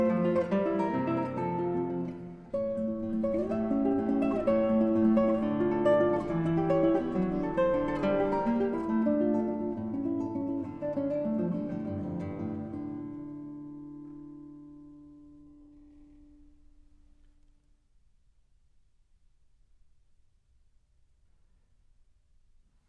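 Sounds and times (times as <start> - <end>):
minuet in D minor: 0.0 - 16.4.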